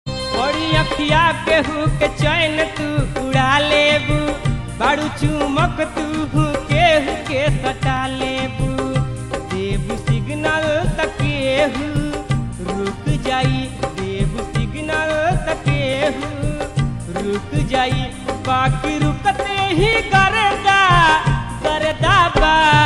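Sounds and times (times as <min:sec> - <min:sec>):
Bhojpuri ringtone: 0:00.1 - 0:22.8.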